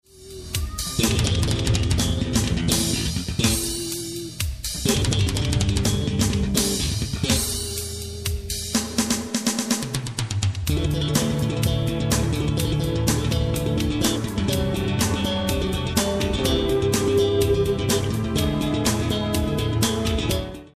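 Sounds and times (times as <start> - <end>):
bassline: 0.0 - 20.7.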